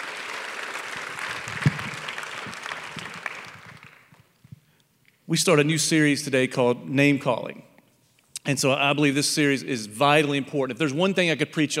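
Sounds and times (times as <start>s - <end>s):
audience applause: 0.0s - 4.2s
speech: 5.3s - 7.7s, 8.5s - 11.7s.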